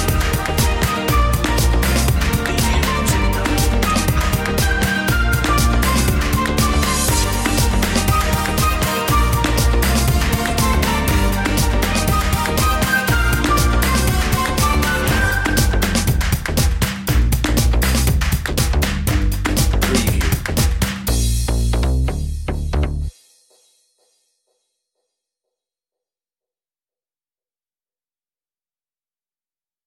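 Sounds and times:
latin groove music: 0:00.0 - 0:23.7.

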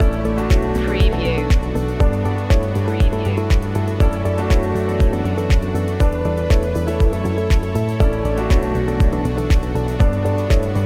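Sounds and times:
pitched loop: 0:00.0 - 0:10.7.

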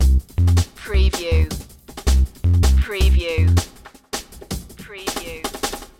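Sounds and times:
town beat loop: 0:00.0 - 0:03.7, 0:04.8 - 0:05.8.

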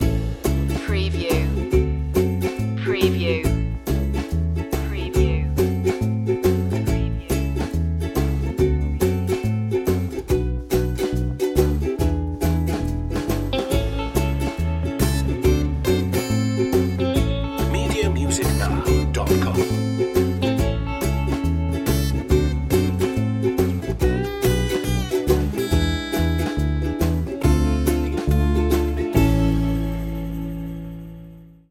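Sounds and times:
joyful ukulele: 0:00.0 - 0:31.4.

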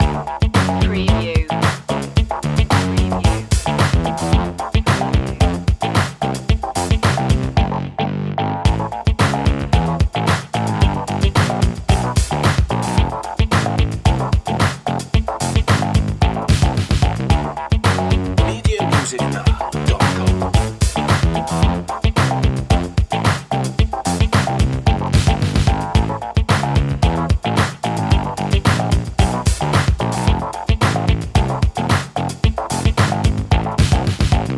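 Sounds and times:
cute fun music loop: 0:00.0 - 0:34.5.

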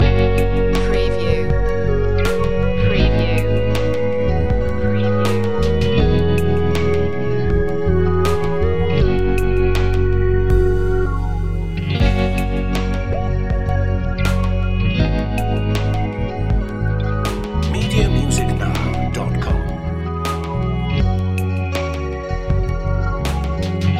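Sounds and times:
ambient dream loop: 0:00.0 - 0:23.0.

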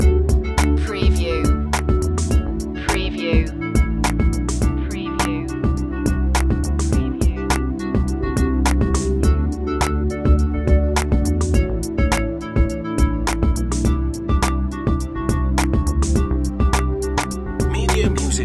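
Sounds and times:
downtown groove music loop: 0:00.0 - 0:18.4.

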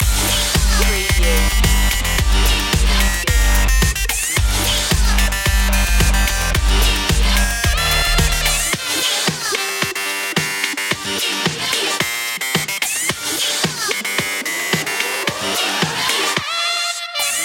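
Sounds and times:
French punk loop: 0:00.0 - 0:16.5.

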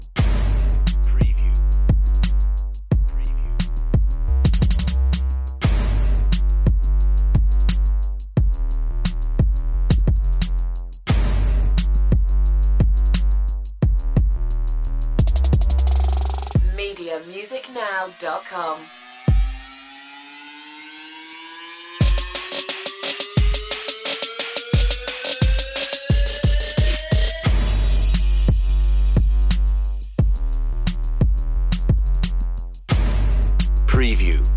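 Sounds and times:
bass: 0:00.0 - 0:16.8, 0:24.8 - 0:34.5
drums: 0:00.0 - 0:34.5.

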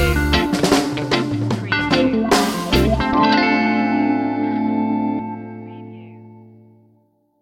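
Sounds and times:
summertime reggae stinger: 0:00.2 - 0:05.4.

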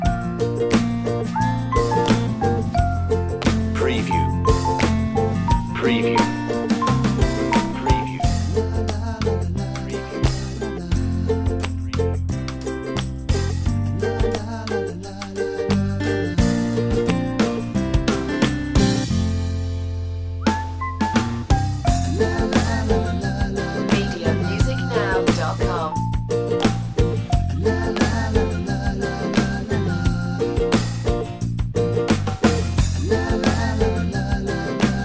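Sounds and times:
commercial ukulele music: 0:00.0 - 0:19.3, 0:20.5 - 0:35.0.

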